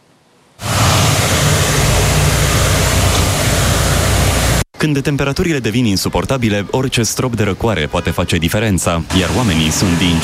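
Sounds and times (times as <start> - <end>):
snow cannon spraying cold water: 0.6 - 4.6, 9.1 - 10.2
speech: 4.8 - 10.2.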